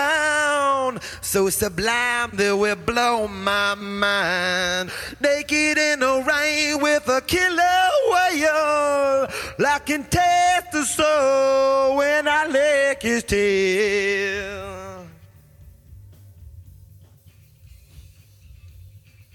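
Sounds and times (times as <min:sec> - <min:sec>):
person singing: 0:00.0 - 0:15.3.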